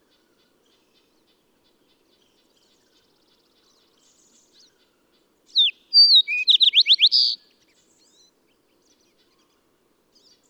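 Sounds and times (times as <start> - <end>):
bird whistled song with buzzy trill: 5.6 - 7.4.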